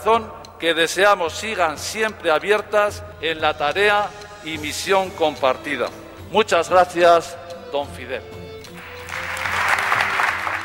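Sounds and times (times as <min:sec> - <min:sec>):
speech: 0:00.0 - 0:08.4
ovation for an apostolic administrator at a jubilee-year church occasion: 0:08.7 - 0:10.6.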